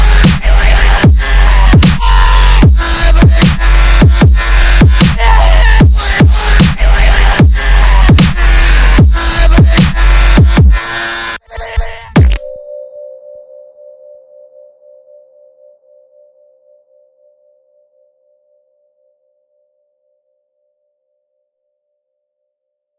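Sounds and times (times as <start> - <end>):
screamstep music: 0.0 - 12.5.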